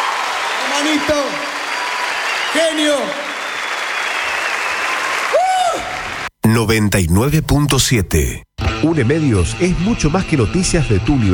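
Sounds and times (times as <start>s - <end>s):
audience applause: 0.0s - 6.3s
speech: 0.8s - 1.6s, 2.5s - 3.4s, 6.6s - 11.3s
whistling tone: 1.3s - 5.2s.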